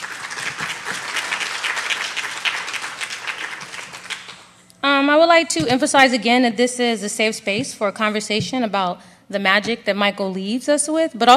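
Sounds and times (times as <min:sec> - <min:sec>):
audience applause: 0:00.0 - 0:04.5
speech: 0:05.0 - 0:11.3.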